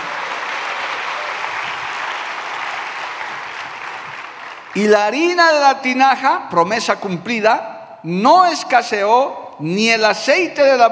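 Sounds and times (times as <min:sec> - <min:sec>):
audience applause: 0:00.0 - 0:05.0
speech: 0:04.8 - 0:10.9.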